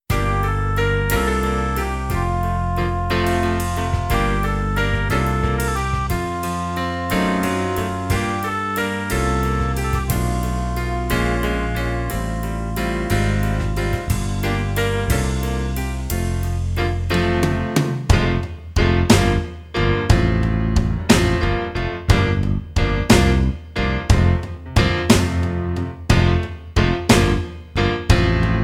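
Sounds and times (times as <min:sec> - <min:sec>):
instrumental music: 0:00.0 - 0:28.6.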